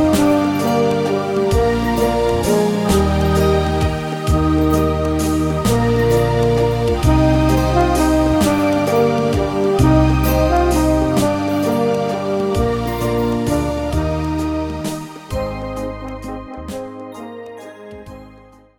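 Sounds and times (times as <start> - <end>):
alto in Eb major: 0.0 - 18.7.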